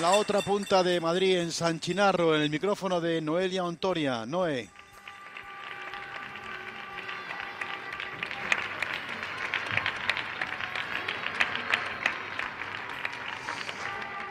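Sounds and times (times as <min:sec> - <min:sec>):
speech: 0:00.0 - 0:04.8
people applauding from balconies: 0:04.4 - 0:14.2.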